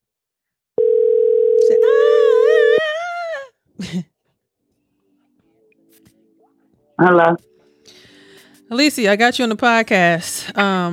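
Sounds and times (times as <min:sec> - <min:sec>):
phone call ringing tone: 0:00.8 - 0:02.8
speech: 0:03.9 - 0:04.1, 0:07.0 - 0:07.5, 0:08.7 - 0:10.9.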